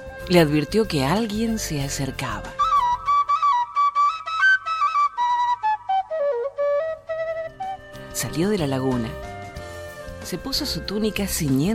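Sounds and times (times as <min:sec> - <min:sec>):
speech: 0:00.3 - 0:02.6, 0:08.3 - 0:09.2, 0:10.3 - 0:11.7
distant quena flute playing: 0:02.4 - 0:10.2.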